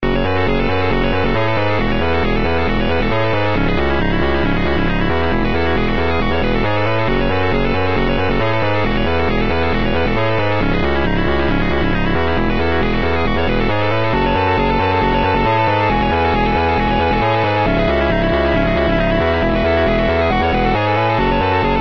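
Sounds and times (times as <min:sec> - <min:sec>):
minigame theme music: 0:00.0 - 0:21.7.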